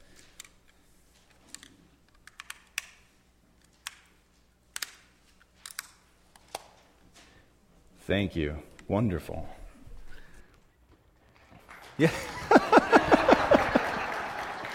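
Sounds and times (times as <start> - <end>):
plastic clicks and snaps swapping batteries in a small device: 1.4 - 3.0, 4.7 - 6.8
speech: 8.1 - 9.6, 12.0 - 12.3
laughter: 12.0 - 14.7.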